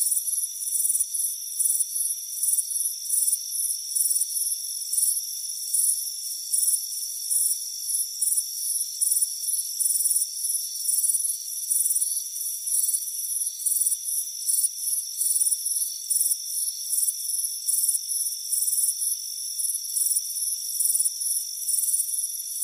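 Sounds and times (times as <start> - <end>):
crickets chirping: 0.0 - 22.6.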